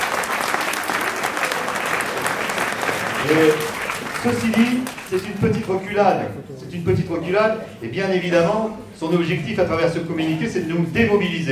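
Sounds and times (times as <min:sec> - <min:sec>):
audience applause: 0:00.0 - 0:05.4
speech: 0:03.2 - 0:11.5.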